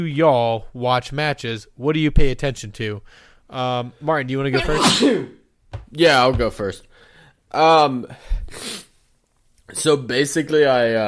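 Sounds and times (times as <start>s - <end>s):
speech: 0.0s - 6.9s, 7.5s - 8.8s, 9.7s - 11.0s
person sneezing: 4.5s - 5.4s.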